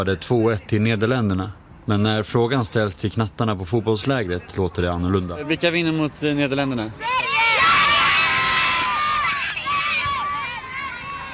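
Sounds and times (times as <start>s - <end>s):
speech: 0.0s - 7.4s
children cheering at Östermalms IP sports ground: 7.0s - 11.3s.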